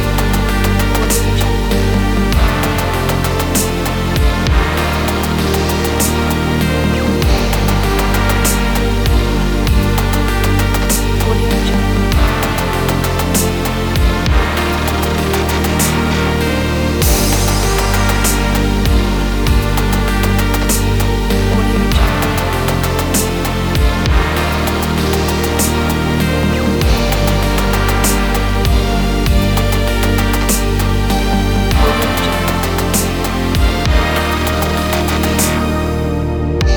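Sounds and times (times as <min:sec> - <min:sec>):
relaxing electronic ambient music: 0:00.0 - 0:36.7.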